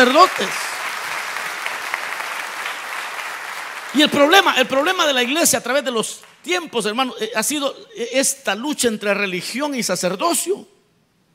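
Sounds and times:
speech: 0.0 - 0.7, 3.9 - 10.8
audience applause: 0.0 - 5.5.

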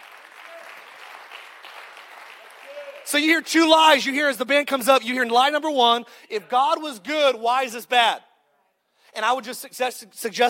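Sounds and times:
audience clapping: 0.0 - 3.5
speech: 3.1 - 8.3, 9.2 - 10.4.

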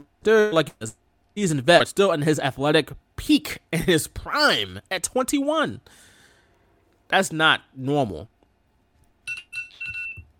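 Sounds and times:
speech: 0.0 - 6.1, 7.1 - 8.3
phone alarm going off: 9.3 - 10.3.

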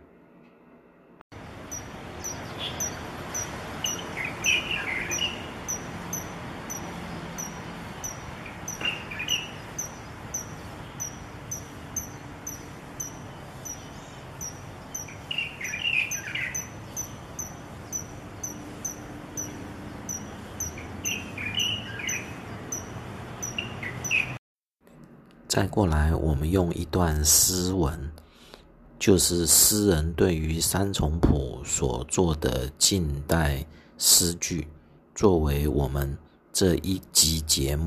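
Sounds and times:
insect chirping: 1.4 - 24.4
Taiwan kingfisher calls in park: 1.6 - 24.4
speech: 25.6 - 28.2, 29.0 - 37.8.

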